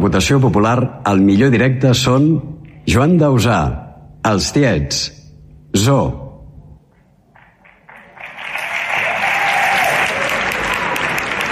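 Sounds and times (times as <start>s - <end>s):
speech: 0.0s - 6.2s
audience applause: 7.4s - 11.5s.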